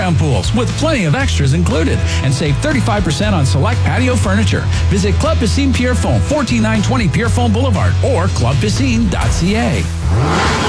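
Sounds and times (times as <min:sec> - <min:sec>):
speech: 0:00.1 - 0:10.6
car engine revving: 0:09.1 - 0:10.6.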